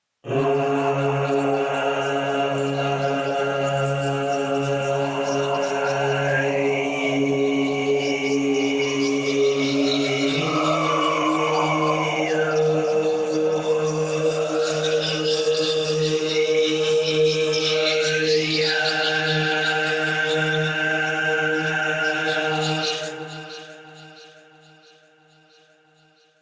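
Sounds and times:
choir singing: 0:00.2 - 0:24.6.

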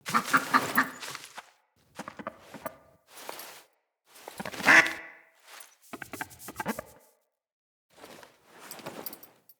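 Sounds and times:
duck: 0:00.1 - 0:01.0, 0:04.4 - 0:05.2.

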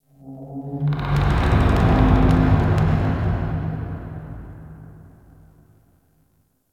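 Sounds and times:
wood creaking: 0:00.9 - 0:03.2.

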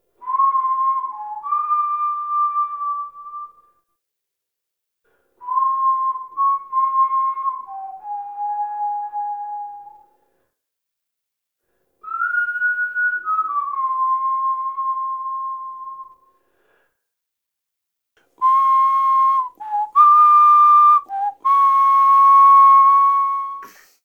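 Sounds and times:
whistling: 0:00.2 - 0:03.8, 0:05.4 - 0:10.1, 0:12.0 - 0:16.4, 0:18.4 - 0:24.0.

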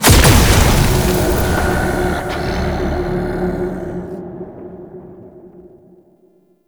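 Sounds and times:
portal shattering open: 0:00.0 - 0:03.3.

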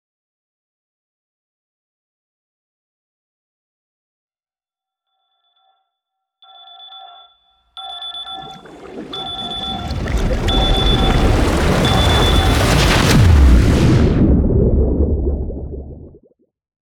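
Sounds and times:
sunrise cinematic outro sound effect: 0:09.9 - 0:16.2.

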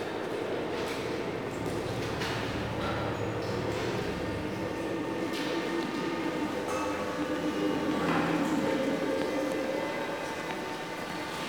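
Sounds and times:
locker room ambience: 0:00.1 - 0:11.4.

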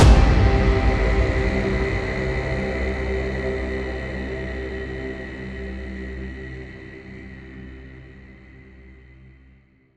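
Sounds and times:
combat music cue ending: 0:00.0 - 0:05.8.

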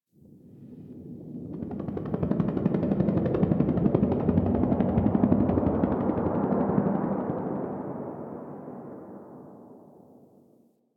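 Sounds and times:
distant helicopter: 0:01.3 - 0:09.9.

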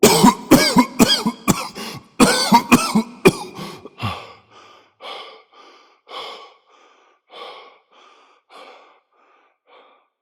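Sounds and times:
person coughing: 0:00.0 - 0:04.4.

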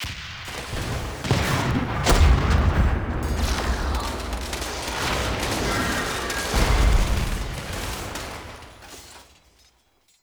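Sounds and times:
battle ambience: 0:00.0 - 0:10.1.

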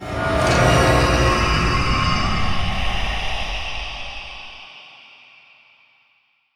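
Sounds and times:
horror stinger: 0:00.0 - 0:04.7.

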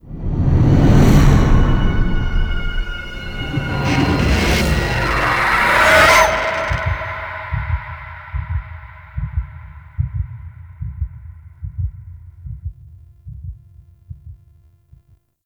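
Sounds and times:
game level load stinger: 0:00.2 - 0:09.4.

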